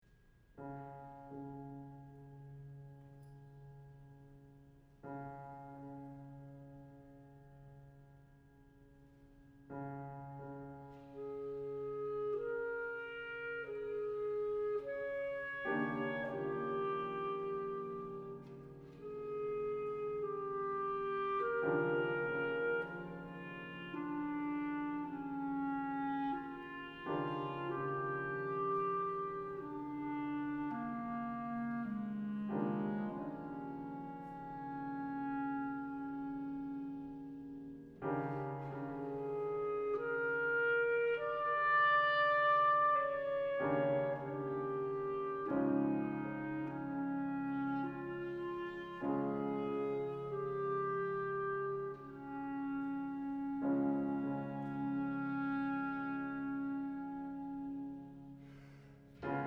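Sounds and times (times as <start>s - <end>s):
clarinet: 0.6s - 59.4s.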